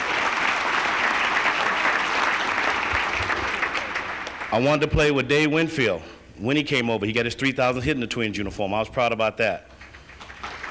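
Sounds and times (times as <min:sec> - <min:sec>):
audience applause: 0:00.0 - 0:04.5, 0:09.8 - 0:10.6
speech: 0:04.5 - 0:09.7.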